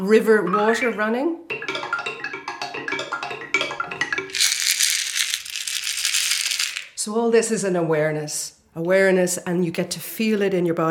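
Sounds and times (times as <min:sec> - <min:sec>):
speech: 0:00.0 - 0:01.7, 0:07.0 - 0:10.8
shells rattling as they land on ground: 0:04.3 - 0:07.0.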